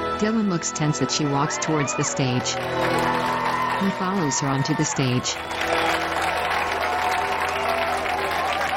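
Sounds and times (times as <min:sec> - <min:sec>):
speech: 0:00.2 - 0:03.3, 0:03.8 - 0:06.0
crowd applauding: 0:01.5 - 0:08.7.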